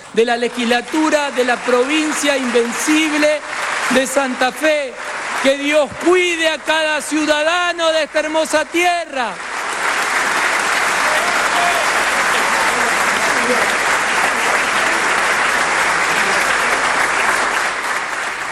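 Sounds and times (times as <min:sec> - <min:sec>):
legislative assembly applause: 0:00.0 - 0:18.5
speech: 0:00.1 - 0:09.5
faint crowd murmur: 0:10.3 - 0:18.5.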